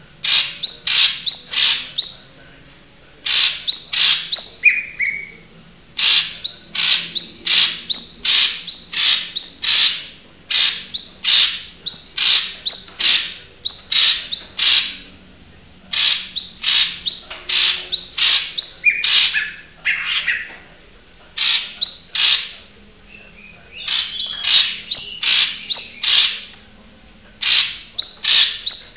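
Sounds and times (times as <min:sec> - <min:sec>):
cucak hijau kepala kuning bird: 0:00.2 - 0:02.4, 0:03.2 - 0:15.1, 0:15.9 - 0:20.6, 0:21.4 - 0:26.6, 0:27.4 - 0:28.9.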